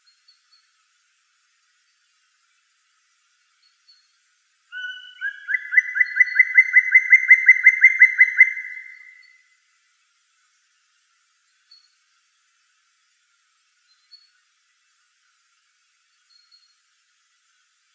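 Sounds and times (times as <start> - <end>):
black woodpecker Dryocopus martius: 4.7 - 9.4.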